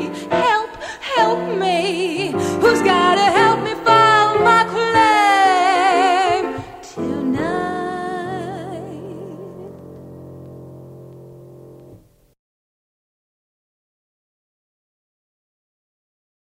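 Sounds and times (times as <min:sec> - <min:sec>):
piano mix: 0:00.0 - 0:12.1.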